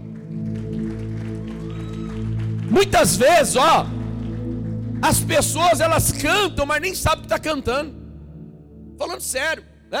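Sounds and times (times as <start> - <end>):
audience applause: 0.0 - 5.3
sustained keyboard chords: 0.0 - 9.9
speech: 2.7 - 4.0, 5.0 - 8.0, 9.0 - 9.9.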